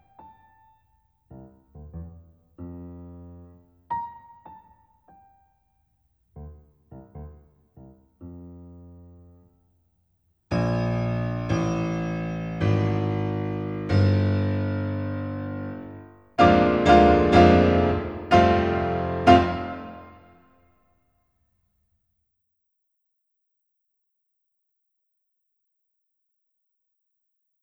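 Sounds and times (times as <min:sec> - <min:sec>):
polka for piano four hands: 0:00.0 - 0:05.6, 0:06.3 - 0:09.6, 0:10.5 - 0:20.4.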